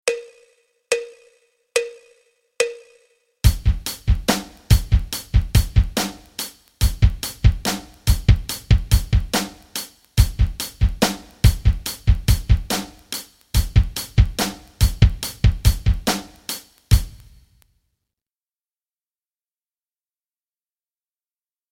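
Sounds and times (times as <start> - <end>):
rock rhythms: 3.4 - 17.4.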